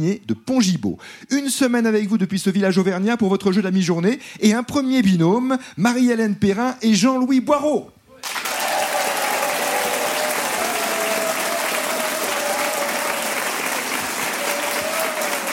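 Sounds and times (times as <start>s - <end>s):
speech: 0.0s - 8.0s
audience applause in Pontgibaud greeting game show contestants: 8.2s - 15.5s.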